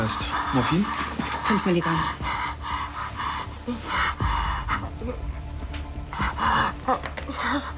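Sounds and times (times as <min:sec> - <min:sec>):
speech: 0:00.0 - 0:02.3, 0:03.7 - 0:04.1, 0:06.5 - 0:07.7
laboured heavy breathing of a patient: 0:00.0 - 0:07.7.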